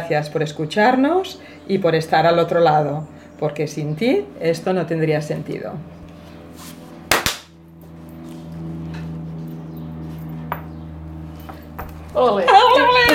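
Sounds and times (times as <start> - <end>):
low steady hum: 0.0 - 13.1
speech: 0.1 - 6.0, 12.2 - 12.6
clapperboard snap: 7.1 - 7.6.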